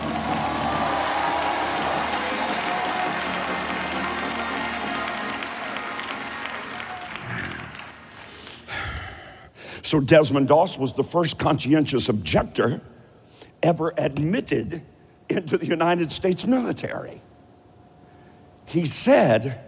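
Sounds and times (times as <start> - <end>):
audience clapping and shouting: 0.0 - 8.7
speech: 9.9 - 12.9, 13.6 - 17.3, 18.7 - 19.6.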